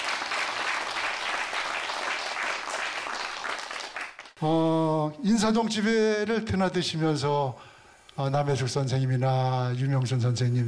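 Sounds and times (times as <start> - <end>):
audience applause: 0.0 - 4.4
speech: 4.4 - 10.6.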